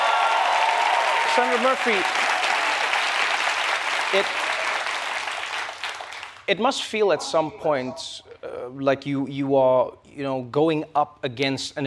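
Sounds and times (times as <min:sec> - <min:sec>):
The Daily Show studio audience applause: 0:00.0 - 0:06.5
speech: 0:01.4 - 0:02.3, 0:04.1 - 0:04.4, 0:06.5 - 0:11.8.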